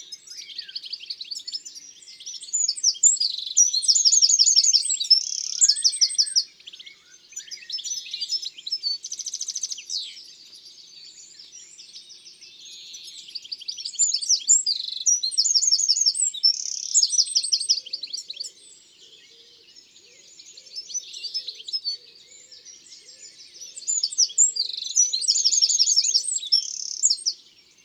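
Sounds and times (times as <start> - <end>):
Eurasian wren song: 0.0 - 27.8.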